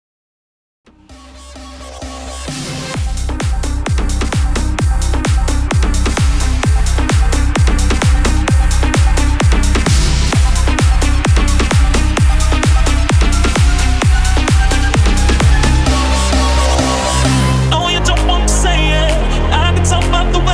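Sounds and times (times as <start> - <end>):
130 bpm music track: 0.9 - 20.5.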